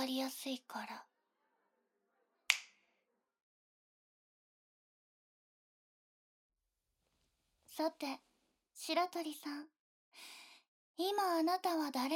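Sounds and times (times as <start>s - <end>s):
speech: 0.0s - 1.2s, 7.8s - 10.4s, 11.0s - 12.1s
finger snap: 2.5s - 2.8s.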